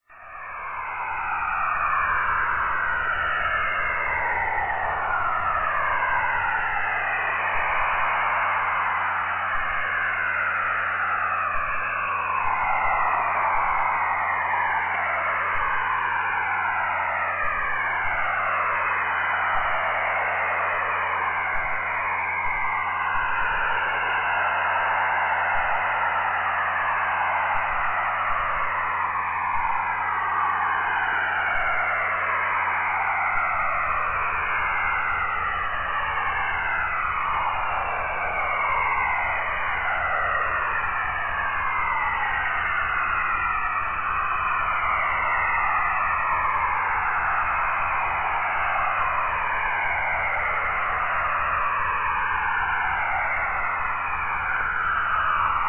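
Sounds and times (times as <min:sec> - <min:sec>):
strange radio noise at 7100 kHz: 0:00.3 - 0:55.6.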